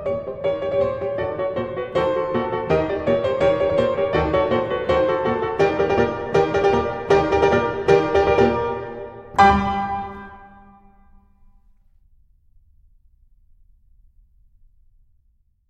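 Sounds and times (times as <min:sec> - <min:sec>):
staccato children's piano piece: 0:00.0 - 0:11.2.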